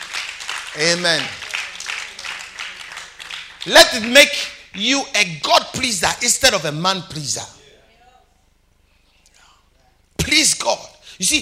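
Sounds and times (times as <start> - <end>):
audience clapping hands: 0.0 - 4.9
speech: 0.8 - 1.4, 3.6 - 7.6, 11.2 - 11.3.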